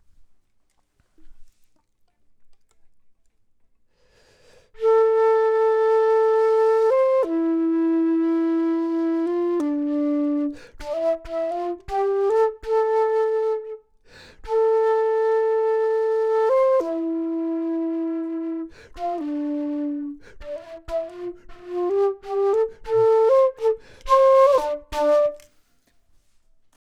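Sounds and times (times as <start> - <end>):
flute: 4.8 - 25.6.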